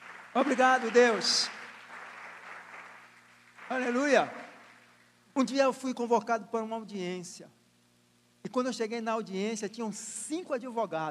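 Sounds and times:
audience applause: 0.0s - 5.1s
low steady hum: 0.0s - 11.0s
speech: 0.4s - 1.6s, 3.7s - 4.4s, 5.4s - 7.6s, 8.4s - 11.0s.

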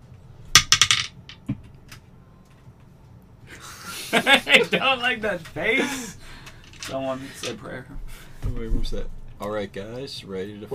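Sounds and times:
dice clattering onto a surface: 0.6s - 1.4s
laughter: 3.5s - 6.2s
speech: 4.1s - 6.2s, 6.9s - 10.7s.

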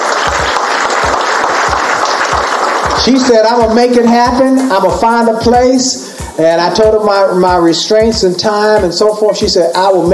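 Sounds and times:
round of applause: 0.0s - 4.4s
speech: 3.0s - 10.1s.

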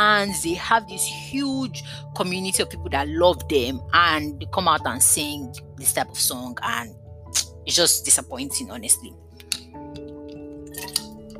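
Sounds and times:
speech: 0.2s - 7.0s, 7.7s - 9.4s
person drinking water: 10.6s - 11.3s.

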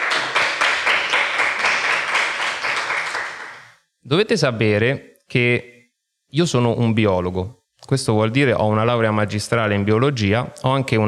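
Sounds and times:
audience applause: 0.0s - 3.8s
speech: 4.1s - 5.7s, 6.3s - 11.0s.

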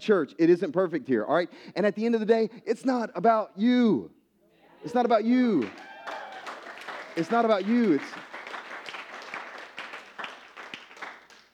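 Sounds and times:
speech: 0.0s - 4.2s, 4.8s - 6.2s, 7.2s - 8.3s
audience clapping: 5.6s - 11.5s.

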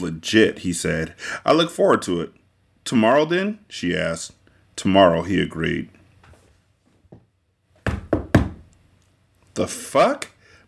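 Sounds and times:
speech: 0.0s - 6.0s, 9.6s - 10.6s
heavy knocking on a front door: 7.1s - 8.7s.

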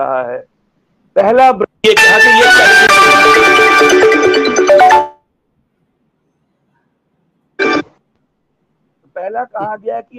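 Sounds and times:
speech: 0.0s - 0.5s, 1.2s - 4.0s, 9.2s - 10.1s
mobile phone ringtone for an incoming call: 2.0s - 5.2s, 7.6s - 8.0s.

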